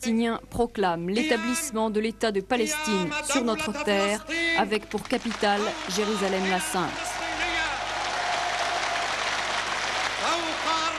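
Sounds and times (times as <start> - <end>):
speech: 0.0 - 7.2
thunderous applause from an assembly: 5.2 - 10.9.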